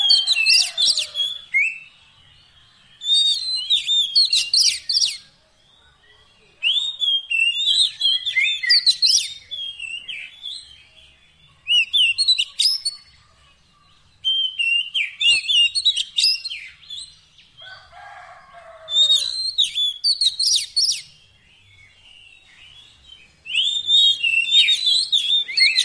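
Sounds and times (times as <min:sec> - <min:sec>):
Oriental magpie-robin singing whistles: 0:00.0 - 0:02.0, 0:03.0 - 0:05.2, 0:06.6 - 0:10.9, 0:11.6 - 0:13.1, 0:14.2 - 0:17.2, 0:18.9 - 0:25.8.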